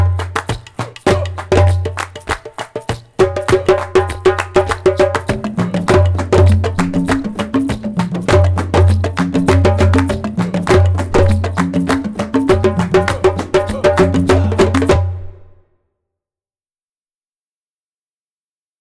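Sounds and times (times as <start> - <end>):
African drum dance instrumental music: 0.0 - 15.6.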